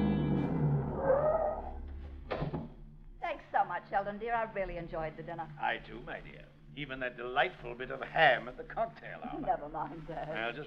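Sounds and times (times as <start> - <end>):
car driving up: 0.0 - 2.1
speech: 3.9 - 10.6.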